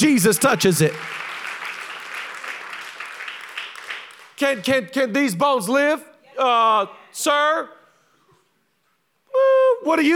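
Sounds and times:
speech: 0:00.0 - 0:01.2, 0:04.4 - 0:07.8, 0:09.4 - 0:10.1
audience clapping: 0:00.0 - 0:04.9.

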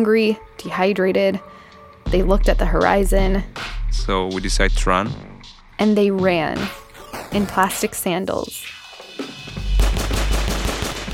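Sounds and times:
speech: 0:00.0 - 0:08.8
soldiers' gunfire at fleeing men: 0:09.6 - 0:11.1.

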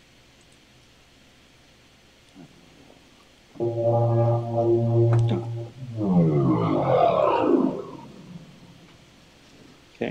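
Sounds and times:
deep downer sound effect: 0:03.6 - 0:09.0.

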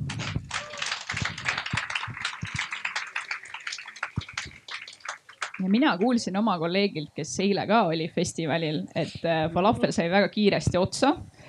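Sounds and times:
audience applause: 0:00.0 - 0:06.3
speech: 0:05.6 - 0:11.3.

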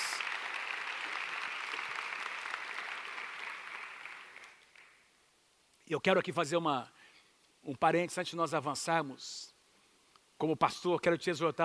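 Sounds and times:
audience applause: 0:00.0 - 0:05.0
speech: 0:05.9 - 0:07.0, 0:07.6 - 0:09.5, 0:10.4 - 0:11.6.

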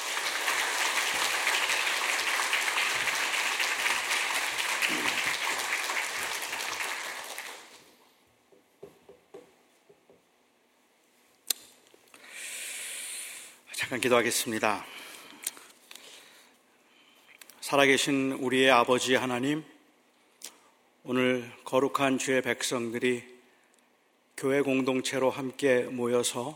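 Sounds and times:
audience applause welcoming a speaker: 0:00.0 - 0:07.9
brief hiss: 0:12.3 - 0:13.6
speech: 0:13.9 - 0:15.0, 0:17.7 - 0:19.7, 0:21.1 - 0:23.3, 0:24.4 - 0:26.5.

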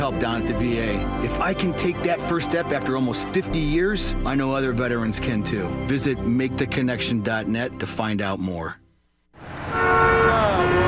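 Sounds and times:
speech: 0:00.1 - 0:08.8
Nashville city street traffic: 0:09.4 - 0:10.8
car horns honking in Nashville: 0:09.4 - 0:10.8.

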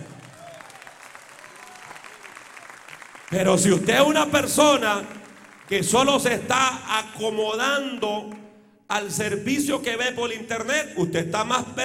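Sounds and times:
faint voices and cheers: 0:00.0 - 0:02.9
audience applause: 0:00.0 - 0:06.4
speech: 0:03.3 - 0:11.8.

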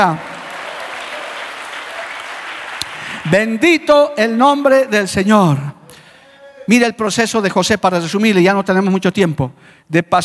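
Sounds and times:
speech: 0:00.0 - 0:00.3, 0:03.3 - 0:05.8, 0:06.7 - 0:10.2
audience applause: 0:00.0 - 0:03.3.

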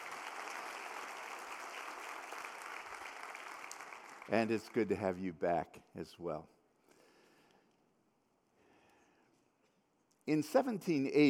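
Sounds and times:
audience applause for the choir: 0:00.0 - 0:05.0
speech: 0:04.3 - 0:06.6, 0:10.3 - 0:11.2.

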